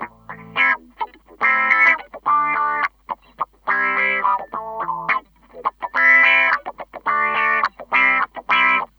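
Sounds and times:
SLA GTR2 guitar: 0.0s - 8.9s.

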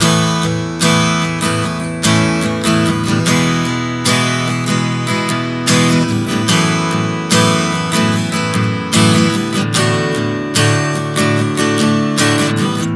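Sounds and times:
acoustic guitar chord progression: 0.0s - 12.9s.

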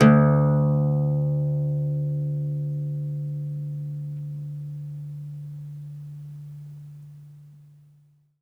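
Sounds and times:
oud plucked strings: 0.0s - 5.7s.

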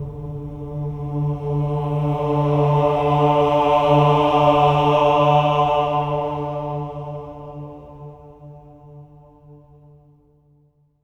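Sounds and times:
choir swelling ahs on D3: 0.0s - 8.1s.

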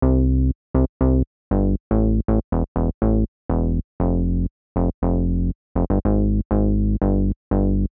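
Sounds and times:
bass: 0.0s - 7.9s.

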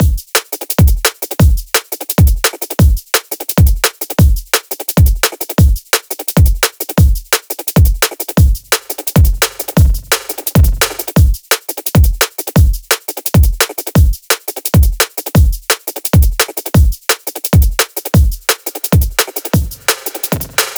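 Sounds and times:
drum and bass drum beat: 0.0s - 20.7s.

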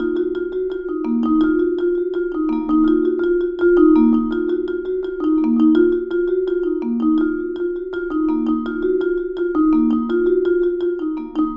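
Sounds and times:
vibraphone: 0.0s - 11.5s.

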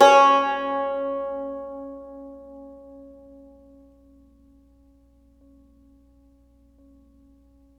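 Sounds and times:
cumbus note C sharp 3: 0.0s - 2.7s.

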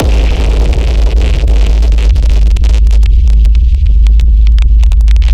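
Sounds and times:
deadly impact hit: 0.0s - 5.2s.

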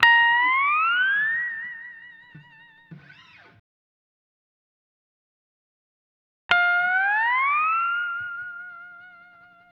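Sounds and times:
dry steel guitar in A sharp in lounge style: 0.0s - 3.6s, 6.5s - 9.7s.

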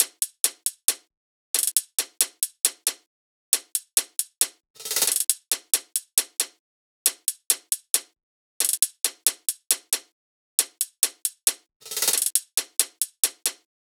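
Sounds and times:
hi-hat loop: 0.0s - 1.0s, 1.6s - 3.0s, 3.6s - 6.5s, 7.1s - 8.0s, 8.6s - 10.0s, 10.6s - 13.6s.

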